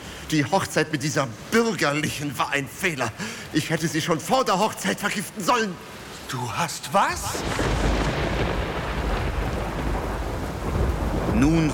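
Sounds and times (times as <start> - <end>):
heavy rain: 0.0 - 11.7
speech: 0.3 - 7.8, 11.4 - 11.7
deep thunder rumbling: 7.1 - 11.7.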